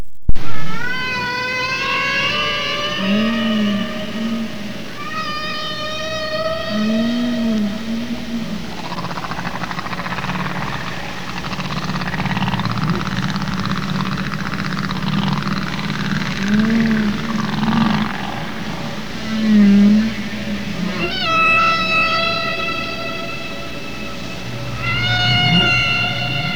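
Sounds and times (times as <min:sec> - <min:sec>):
humpback whale song: 0:00.3 - 0:26.5.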